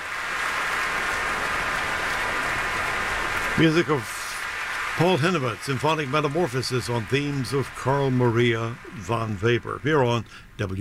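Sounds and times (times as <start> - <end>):
large audience applause after orchestral performance: 0.0 - 10.3
speech: 3.6 - 4.2, 5.0 - 10.7.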